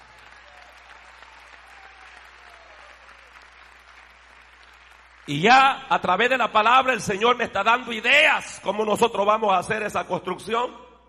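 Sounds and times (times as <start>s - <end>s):
audience applauding: 0.0s - 5.8s
speech: 5.3s - 10.8s.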